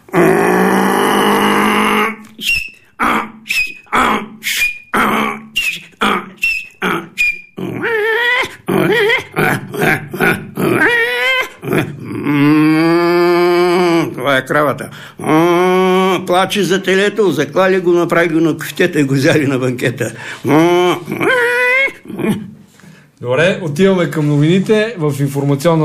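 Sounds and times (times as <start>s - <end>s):
man imitating a donkey's bray: 0.0s - 16.8s, 20.3s - 22.6s
speech: 16.3s - 21.6s, 23.2s - 25.8s.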